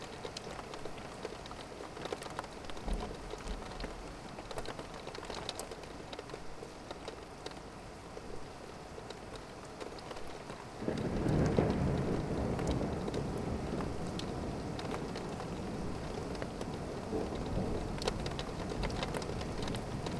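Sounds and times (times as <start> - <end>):
rain heard out of a window: 0.0 - 20.1
thunder: 10.8 - 16.2.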